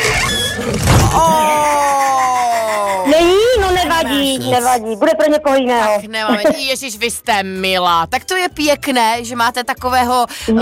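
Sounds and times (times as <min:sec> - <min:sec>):
squealing creaking prize box opening effect in a radio money game: 0:00.0 - 0:01.6
laughter: 0:01.1 - 0:05.0, 0:05.8 - 0:06.8
speech: 0:04.4 - 0:10.5.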